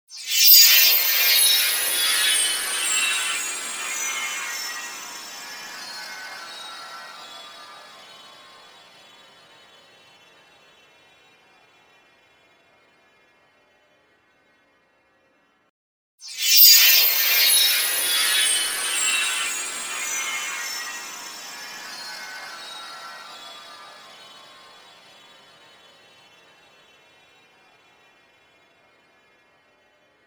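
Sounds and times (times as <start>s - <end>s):
Tinker Bell-like magic spell sparkle around head: 0.2s - 9.2s, 16.3s - 25.6s.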